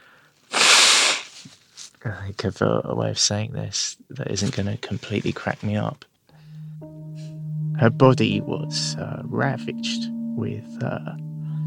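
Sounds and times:
nose blowing: 0.5s - 1.6s
speech: 2.0s - 6.1s, 7.8s - 11.2s.

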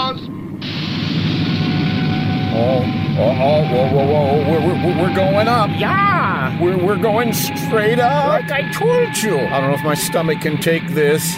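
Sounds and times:
engine roaring at takeoff: 0.0s - 11.3s
speech: 2.8s - 11.3s.

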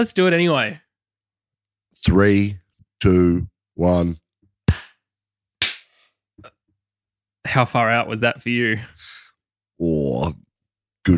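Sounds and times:
speech: 0.0s - 0.8s, 2.0s - 4.2s, 7.4s - 9.2s, 9.8s - 11.1s
synchronized hand clap: 4.7s - 5.0s, 5.6s - 5.9s.

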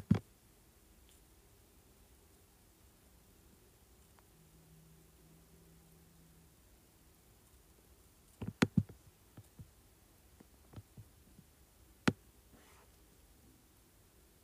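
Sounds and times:
faint low hum: 0.0s - 14.4s
keyboard and mouse clicks: 8.4s - 9.6s.

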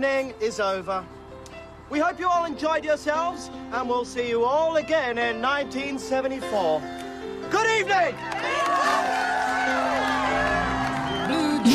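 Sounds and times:
speech: 0.0s - 1.2s, 1.9s - 9.1s
crowd cheering and whooping: 8.1s - 11.7s.

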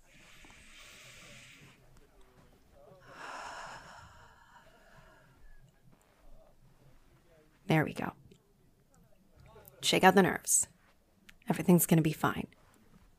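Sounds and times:
deep breath taken to steady nerves before facing an audience: 0.0s - 6.3s
speech: 7.7s - 8.2s, 9.8s - 10.7s, 11.5s - 12.6s.

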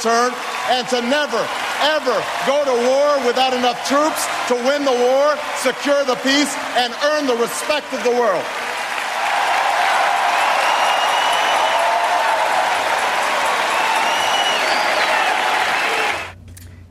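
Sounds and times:
speech: 0.0s - 8.6s
crowd cheering and applauding after a speech: 0.0s - 16.4s.

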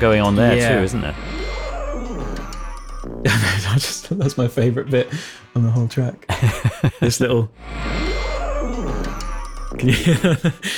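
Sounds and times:
speech: 0.0s - 1.4s, 3.2s - 8.1s, 9.7s - 10.7s
elephant sound effect played on tuba: 0.7s - 3.3s, 7.6s - 9.8s
laughter: 3.2s - 3.9s, 6.3s - 7.4s, 9.8s - 10.7s.

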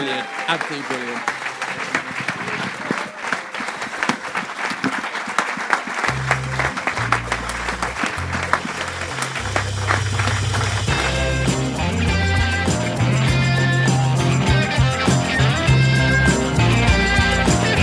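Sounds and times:
live audience applause: 0.0s - 17.8s
speech: 0.2s - 2.6s
deep bass-heavy music bed: 6.1s - 17.8s.

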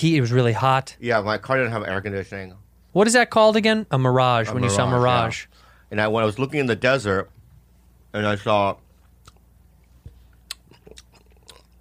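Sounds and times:
speech: 0.0s - 7.4s, 8.1s - 8.8s
candy corn chewed into a microphone: 10.3s - 11.8s.

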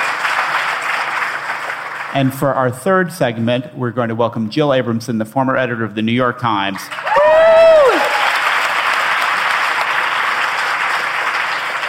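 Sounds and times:
audience applause: 0.0s - 2.4s, 6.8s - 11.8s
speech: 2.1s - 7.2s.

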